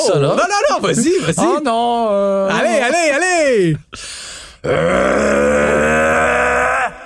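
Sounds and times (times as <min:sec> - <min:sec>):
speech: 0:00.0 - 0:06.4
person imitating Mustang EcoBoost engine roar: 0:04.6 - 0:07.0.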